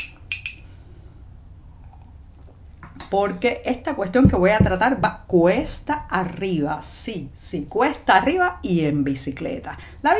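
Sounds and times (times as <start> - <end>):
person sipping a drink: 1.6 - 3.0
speech: 3.1 - 10.1.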